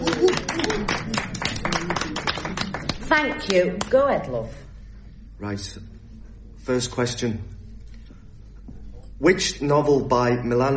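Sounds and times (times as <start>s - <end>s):
audience applause for quiz contestants: 0.0s - 3.2s
speech: 3.1s - 4.6s, 5.4s - 5.9s, 6.6s - 7.6s, 9.2s - 10.7s.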